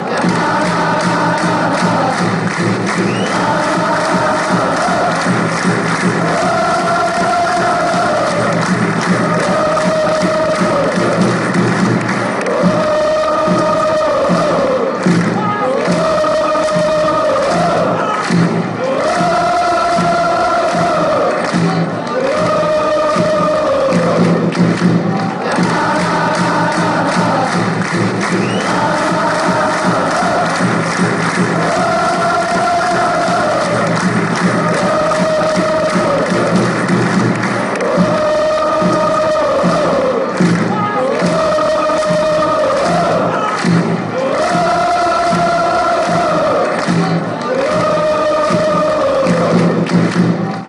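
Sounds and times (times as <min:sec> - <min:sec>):
chanting: 0:00.0 - 0:50.6.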